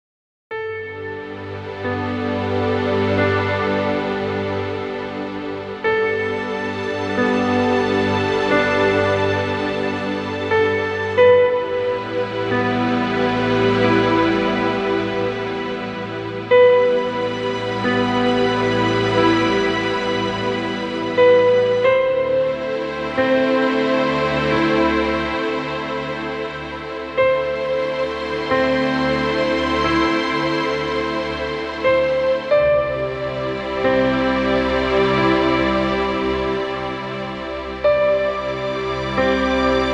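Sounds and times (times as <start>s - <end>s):
piano: 0.5s - 39.9s
strings: 0.5s - 39.9s.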